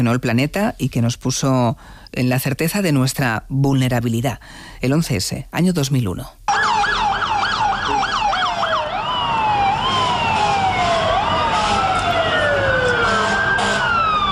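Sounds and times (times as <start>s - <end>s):
speech: 0.0s - 6.4s
emergency sirens: 6.5s - 14.3s
traffic rumble: 7.0s - 14.3s.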